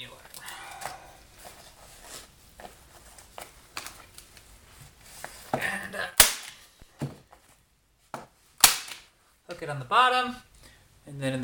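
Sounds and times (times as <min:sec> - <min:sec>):
insulation being torn by hand: 0:06.2 - 0:06.6, 0:08.6 - 0:09.1
speech: 0:09.6 - 0:10.5, 0:11.1 - 0:11.4.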